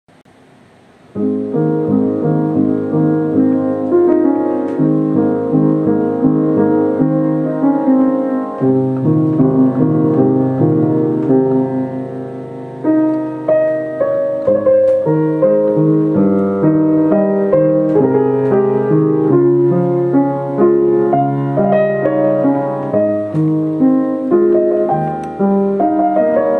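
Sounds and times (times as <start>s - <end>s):
piano melody: 1.0s - 26.5s.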